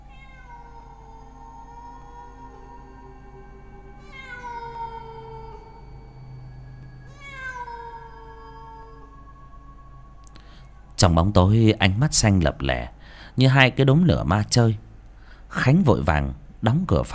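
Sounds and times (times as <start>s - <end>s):
large jet-black cat yowling in a yard: 0.0s - 6.0s, 7.0s - 9.9s
speech: 11.0s - 14.8s, 15.5s - 17.1s.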